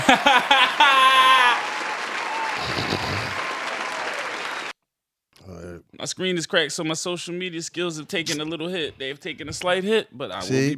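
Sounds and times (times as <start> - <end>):
laughter: 0.0 - 4.7, 5.4 - 10.7
round of applause: 0.0 - 4.7
speech: 0.1 - 1.0, 6.0 - 10.7.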